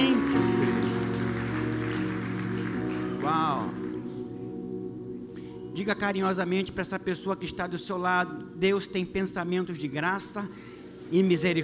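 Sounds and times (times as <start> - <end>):
audience applauding: 0.0 - 4.4
speech: 5.8 - 11.6.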